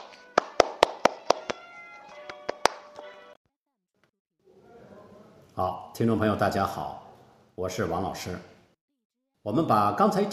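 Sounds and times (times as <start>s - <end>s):
applause: 0.3s - 1.6s, 2.2s - 2.8s
speech: 5.6s - 7.0s, 7.6s - 8.5s, 9.4s - 10.3s.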